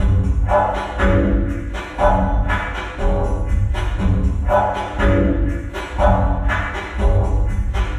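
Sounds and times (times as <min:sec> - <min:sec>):
electronica drum loop: 0:00.0 - 0:07.9.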